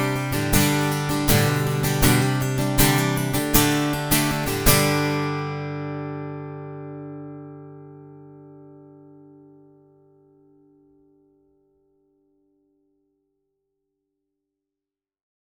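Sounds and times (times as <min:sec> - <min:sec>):
acoustic guitar strummed pedal tone: 0:00.0 - 0:10.8.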